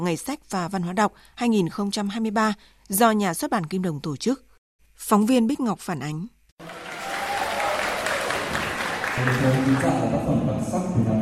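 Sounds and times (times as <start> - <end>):
speech: 0.0 - 6.8, 9.2 - 11.1
excited schoolchildren's voices: 6.6 - 10.0
schoolchildren applauding: 6.6 - 10.1.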